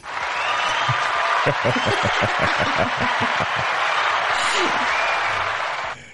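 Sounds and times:
applause sound effect from virtual audience: 0:00.0 - 0:06.0
laughter: 0:00.3 - 0:05.8.

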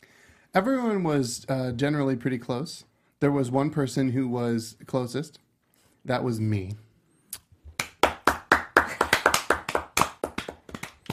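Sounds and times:
speech: 0:00.5 - 0:05.4, 0:06.0 - 0:06.8
applause, hand clapping: 0:07.8 - 0:11.1.

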